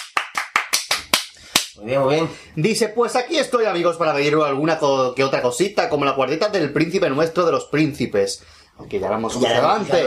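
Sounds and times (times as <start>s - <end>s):
sharp claps: 0.0s - 1.8s
speech: 1.8s - 10.0s.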